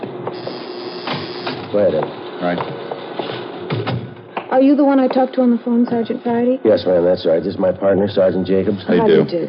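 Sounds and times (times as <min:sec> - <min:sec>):
door buzzer ringing: 0:00.3 - 0:01.7
speech: 0:01.7 - 0:02.8, 0:04.5 - 0:09.4.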